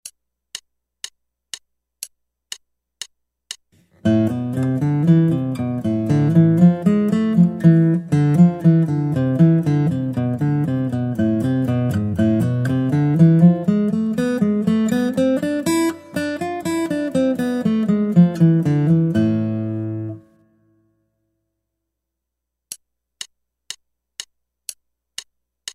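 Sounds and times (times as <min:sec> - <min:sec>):
guitar: 0:03.8 - 0:20.8.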